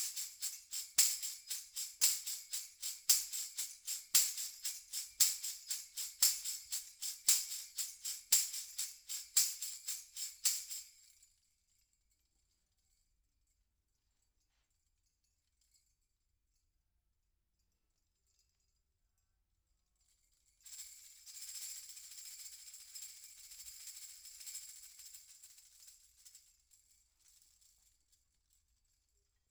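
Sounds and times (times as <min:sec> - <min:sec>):
percussion from overhead microphones: 0:00.0 - 0:11.2, 0:20.0 - 0:28.8.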